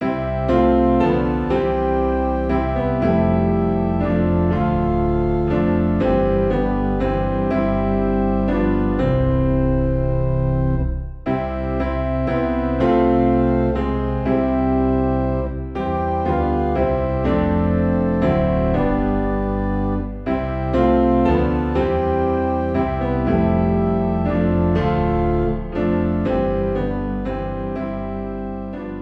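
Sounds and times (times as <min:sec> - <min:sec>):
low organ in C: 0:00.0 - 0:29.0
low piano in C: 0:00.0 - 0:29.0.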